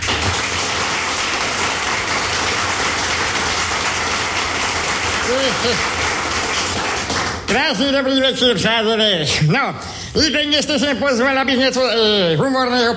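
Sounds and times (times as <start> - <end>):
audience applause: 0.0 - 7.6
speech: 5.3 - 6.0, 7.5 - 12.9.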